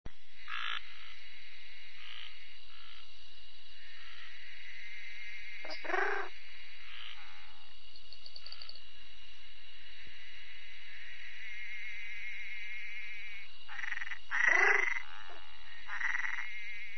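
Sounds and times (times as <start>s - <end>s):
Treefrog pulsed buzzy trills: 0.3s - 3.2s, 3.8s - 8.8s, 10.0s - 16.9s.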